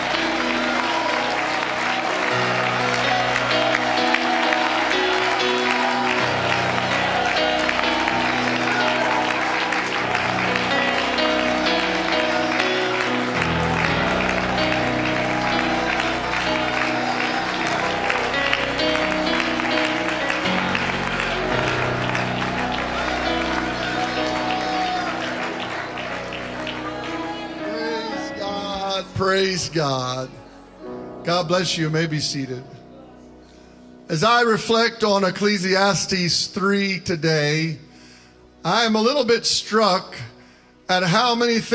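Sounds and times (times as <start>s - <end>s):
audience clapping hands in worship: 0.0s - 29.7s
speech: 29.7s - 30.3s, 31.2s - 32.8s, 34.1s - 37.8s, 38.6s - 40.3s, 40.9s - 41.7s.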